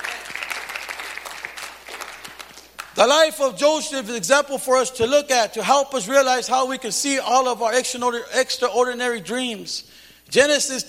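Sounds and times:
audience clapping: 0:00.0 - 0:03.0
speech: 0:03.0 - 0:10.8.

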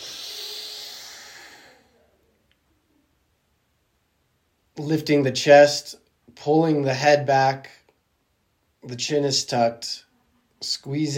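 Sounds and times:
deep inhale during guided breathwork: 0:00.0 - 0:02.0
speech: 0:04.8 - 0:07.8, 0:08.8 - 0:10.0, 0:10.6 - 0:11.1.

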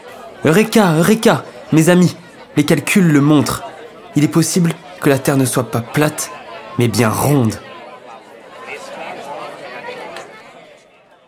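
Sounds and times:
crowd murmuring in astonishment: 0:00.0 - 0:10.8
speech: 0:00.4 - 0:07.7.

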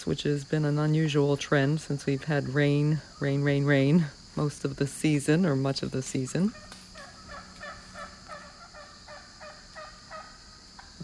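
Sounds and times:
speech: 0:00.0 - 0:06.8
wild turkeys gobbling: 0:06.5 - 0:11.0.

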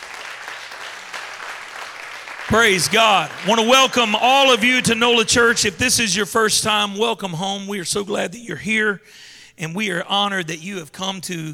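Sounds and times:
church congregation clapping in praise of Jesus: 0:00.0 - 0:06.5
speech: 0:02.5 - 0:11.5.

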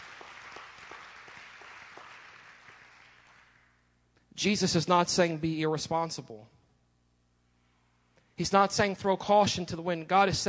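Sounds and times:
audience clapping hands in praise: 0:00.0 - 0:03.8
speech: 0:04.4 - 0:06.6, 0:08.4 - 0:10.4.

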